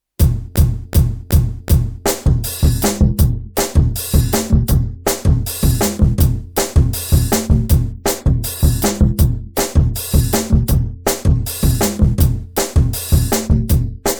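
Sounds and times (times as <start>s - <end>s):
drum pattern: 0.2s - 14.1s.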